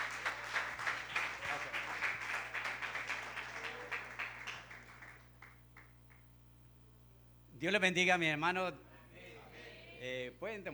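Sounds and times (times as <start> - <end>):
audience applause: 0.0 - 5.9
speech: 7.6 - 8.9, 10.0 - 10.7.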